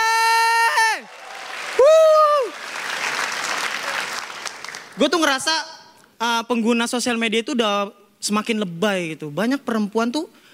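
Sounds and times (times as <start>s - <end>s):
audience applause: 1.0s - 5.0s
speech: 5.0s - 10.4s.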